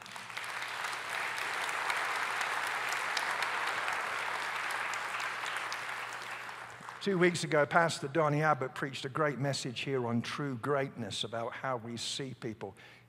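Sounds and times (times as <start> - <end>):
audience applause: 0.0 - 7.3
speech: 7.0 - 13.0.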